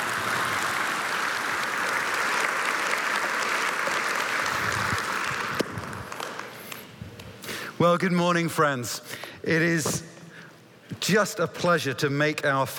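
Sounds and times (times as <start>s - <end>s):
audience applause welcoming a speaker: 0.0s - 6.7s
speech: 7.8s - 10.1s, 11.1s - 12.7s.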